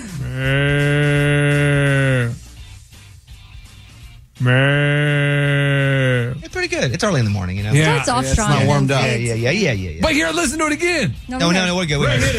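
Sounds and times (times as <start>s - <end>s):
vocal imitation of water buffalo calls: 0.0s - 2.4s, 4.4s - 6.4s
speech: 4.4s - 4.8s, 6.7s - 12.3s.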